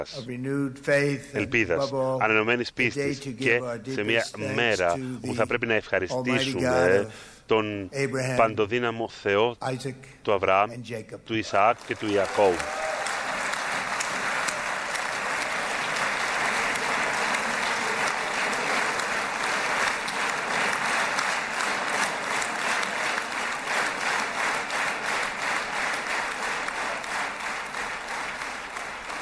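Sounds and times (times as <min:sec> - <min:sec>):
speech: 0:00.0 - 0:12.8
standing ovation applause by parliament members for the American president: 0:11.6 - 0:29.1.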